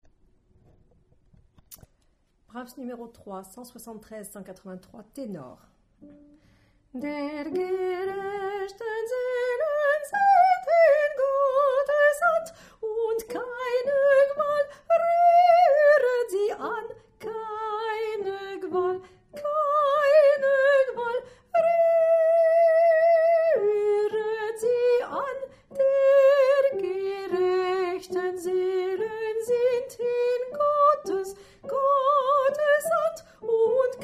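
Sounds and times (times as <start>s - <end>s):
tenor singing: 7.0s - 34.0s.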